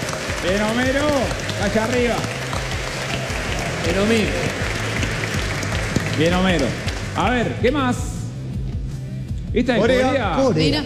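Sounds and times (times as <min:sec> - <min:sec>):
audience applauding: 0:00.0 - 0:07.5
speech: 0:00.4 - 0:02.4, 0:03.8 - 0:04.7, 0:06.2 - 0:08.1, 0:09.5 - 0:10.8.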